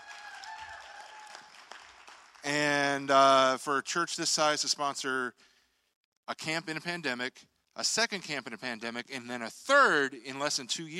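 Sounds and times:
crowd applause: 0:00.0 - 0:03.0
speech: 0:02.5 - 0:05.5, 0:06.3 - 0:10.9.

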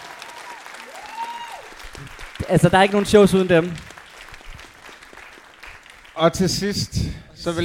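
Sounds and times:
audience applause at a live show: 0:00.0 - 0:06.9
speech: 0:02.5 - 0:03.9, 0:06.2 - 0:07.6.

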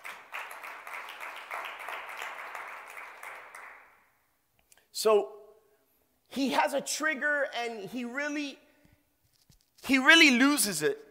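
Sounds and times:
audience clapping: 0:00.0 - 0:04.2
speech: 0:05.0 - 0:05.4, 0:06.4 - 0:08.6, 0:09.8 - 0:11.0.

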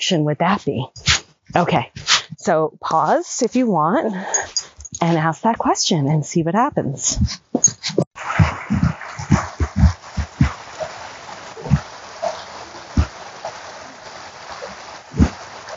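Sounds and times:
speech: 0:00.1 - 0:08.0
flowing creek water: 0:08.2 - 0:15.7.

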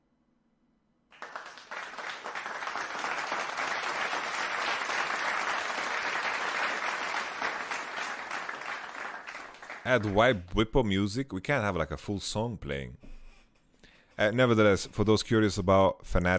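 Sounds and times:
soundboard crowd applause sound effect: 0:01.1 - 0:10.4
speech: 0:09.9 - 0:13.0, 0:14.2 - 0:16.3.

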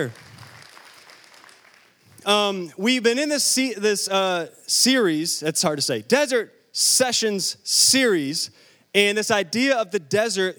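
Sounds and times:
speech: 0:00.0 - 0:00.3, 0:02.3 - 0:10.5
audience clapping: 0:00.0 - 0:02.1.

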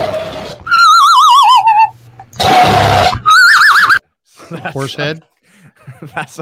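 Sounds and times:
dog-like yawning sound in a meme: 0:00.0 - 0:04.0
laughter: 0:04.3 - 0:06.3
speech: 0:04.7 - 0:05.3, 0:06.0 - 0:06.3.

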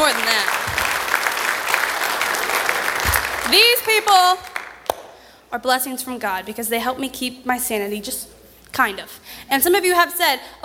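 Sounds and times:
audience applause: 0:00.0 - 0:04.9
speech: 0:03.5 - 0:04.5, 0:05.5 - 0:10.6.

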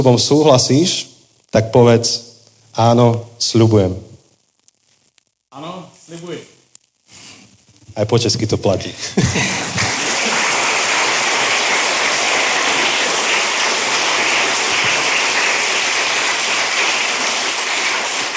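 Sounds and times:
speech: 0:00.0 - 0:04.1, 0:05.5 - 0:06.5, 0:08.0 - 0:10.0
laughter: 0:09.0 - 0:13.3
audience applause: 0:09.2 - 0:18.3.

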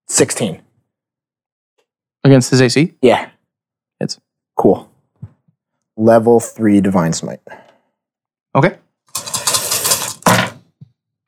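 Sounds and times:
speech: 0:00.2 - 0:00.7, 0:02.2 - 0:03.4, 0:04.0 - 0:04.9, 0:06.0 - 0:07.6, 0:08.5 - 0:08.8
many dice rolling: 0:09.1 - 0:10.6.

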